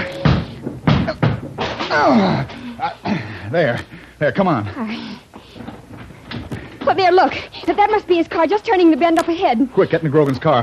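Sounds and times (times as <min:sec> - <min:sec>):
door being forced open by battering: 0:00.2 - 0:02.5
speech: 0:02.0 - 0:05.2, 0:06.9 - 0:10.6.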